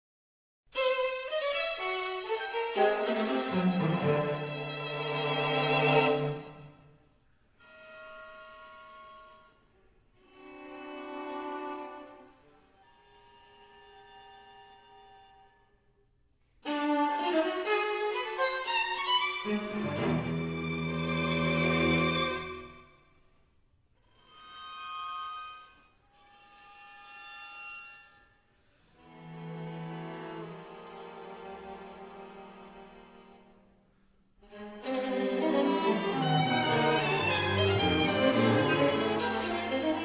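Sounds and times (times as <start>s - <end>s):
string quartet: 0.8s - 6.7s, 10.2s - 12.4s, 16.6s - 22.8s, 29.0s - 33.7s, 34.4s - 40.0s.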